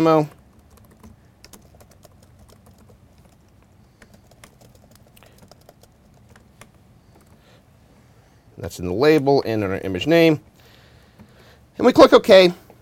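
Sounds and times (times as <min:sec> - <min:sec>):
speech: 0:00.0 - 0:00.4, 0:08.6 - 0:10.5, 0:11.8 - 0:12.6
name being typed on a computer keyboard: 0:00.2 - 0:07.5.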